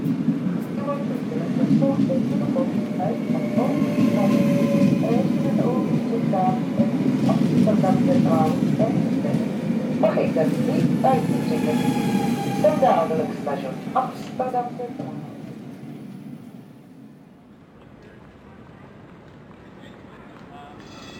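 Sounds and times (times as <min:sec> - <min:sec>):
train rumbling as it arrives in Amsterdam: 0:00.0 - 0:21.1
speech: 0:01.7 - 0:03.6, 0:10.4 - 0:15.1.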